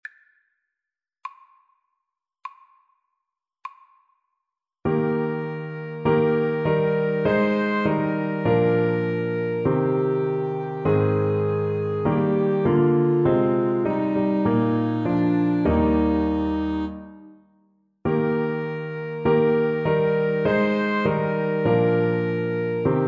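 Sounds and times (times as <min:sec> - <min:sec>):
alto saxophone duet: 0:04.9 - 0:17.4, 0:18.1 - 0:23.0.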